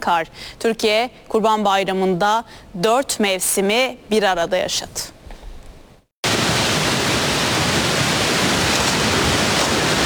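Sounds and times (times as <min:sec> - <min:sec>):
speech: 0:00.0 - 0:05.2
Camili creek overflowing after heavy rain in Borçka, Artvin: 0:06.2 - 0:10.0.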